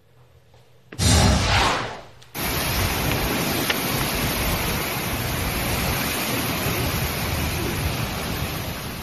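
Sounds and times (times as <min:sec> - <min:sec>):
gusty wind in Florida: 0:01.0 - 0:09.0
heavy rain in Florida: 0:02.4 - 0:09.0.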